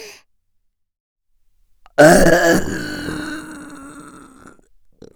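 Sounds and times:
person burping: 0:01.9 - 0:04.6.

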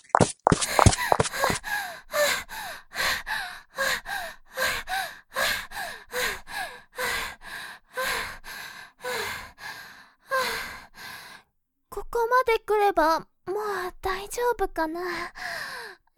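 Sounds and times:
person panting heavily after running away: 0:00.6 - 0:11.4, 0:15.3 - 0:16.0
speech: 0:12.2 - 0:15.4.

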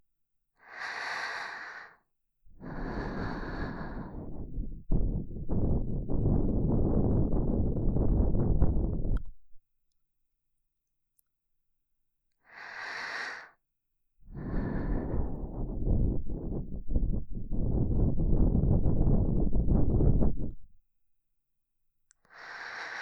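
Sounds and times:
ASMR breathing in the right ear: 0:00.6 - 0:09.2, 0:12.5 - 0:13.6, 0:14.3 - 0:20.7, 0:22.3 - 0:23.0.

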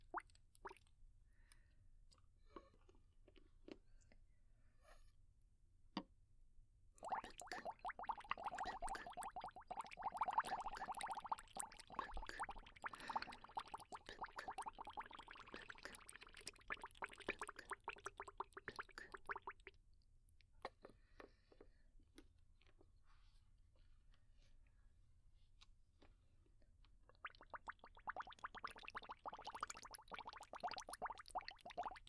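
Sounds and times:
bubbles: 0:07.0 - 0:19.7, 0:27.1 - 0:32.0.

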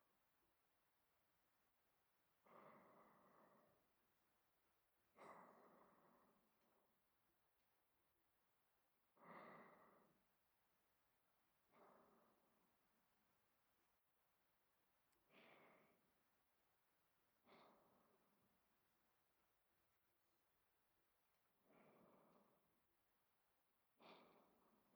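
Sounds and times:
person breathing in sleep: 0:02.4 - 0:04.0, 0:05.1 - 0:06.7, 0:09.2 - 0:10.3, 0:11.7 - 0:12.7, 0:15.2 - 0:16.2, 0:17.4 - 0:18.4, 0:24.0 - 0:24.9.

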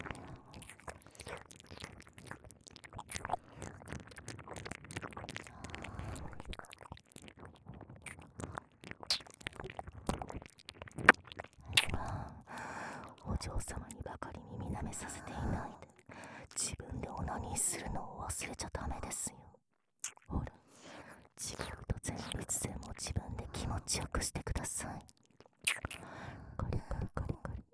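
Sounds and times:
whispering: 0:00.0 - 0:01.4, 0:13.1 - 0:19.6, 0:20.3 - 0:20.6, 0:21.2 - 0:25.1, 0:26.6 - 0:27.7
ear licking sounds: 0:00.1 - 0:12.1, 0:25.4 - 0:26.0.

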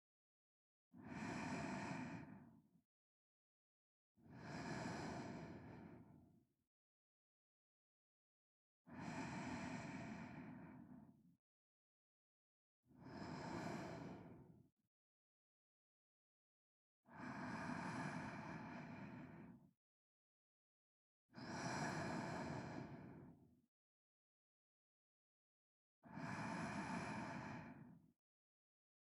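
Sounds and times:
ASMR sleep breathing on left channel: 0:01.0 - 0:02.5, 0:04.3 - 0:06.1, 0:09.0 - 0:11.0, 0:13.0 - 0:14.4, 0:17.2 - 0:19.6, 0:21.4 - 0:23.2, 0:26.2 - 0:27.9.

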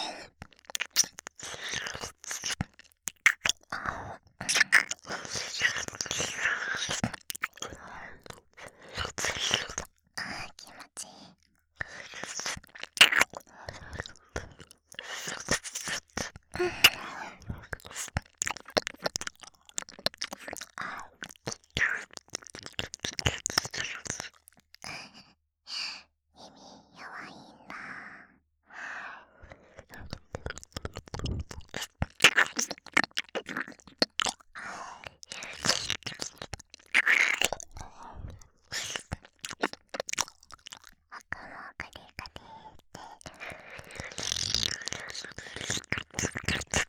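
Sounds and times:
ASMR ear licking sounds: 0:00.2 - 0:11.0, 0:11.8 - 0:25.0, 0:29.8 - 0:46.8.

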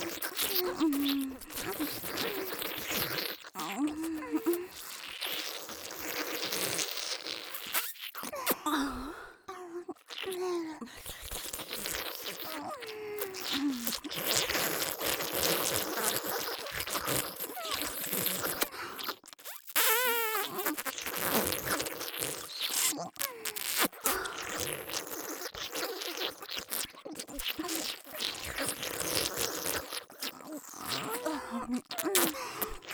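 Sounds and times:
simulated fellatio mouth sounds in an ASMR loop: 0:00.0 - 0:32.9.

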